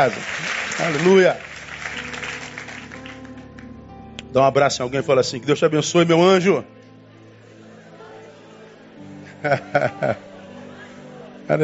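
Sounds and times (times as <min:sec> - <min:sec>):
speech: 0:00.0 - 0:02.1, 0:04.3 - 0:06.8, 0:09.4 - 0:10.3
audience applauding: 0:00.0 - 0:03.6
laughter: 0:07.8 - 0:11.4.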